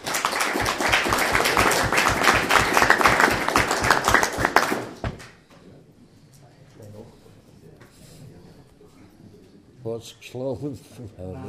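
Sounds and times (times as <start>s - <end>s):
audience applause: 0.0s - 5.0s
speech: 10.0s - 11.4s.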